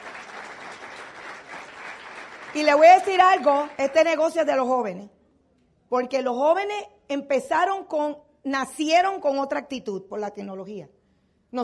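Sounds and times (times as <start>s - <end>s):
audience applause: 0.0s - 3.9s
speech: 2.5s - 5.2s, 5.9s - 11.6s.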